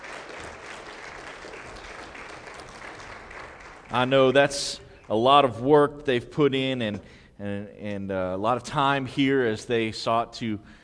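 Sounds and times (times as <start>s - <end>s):
audience applause: 0.0s - 5.1s
speech: 3.9s - 10.8s.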